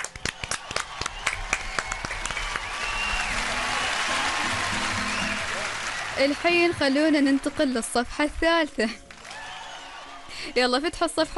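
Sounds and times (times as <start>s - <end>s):
children clapping in a classroom: 0.0s - 8.0s, 9.0s - 10.1s
speech: 6.2s - 9.0s, 10.6s - 11.3s.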